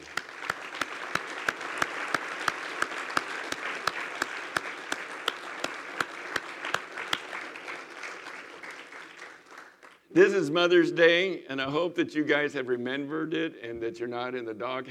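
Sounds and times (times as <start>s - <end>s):
audience applause: 0.0s - 10.0s
speech: 10.2s - 14.8s.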